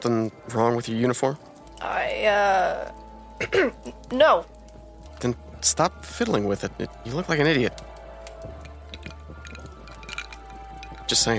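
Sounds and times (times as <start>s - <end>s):
speech: 0.0s - 4.5s, 5.2s - 8.6s, 11.1s - 11.3s
drink poured, spilling past the glass: 7.6s - 11.3s.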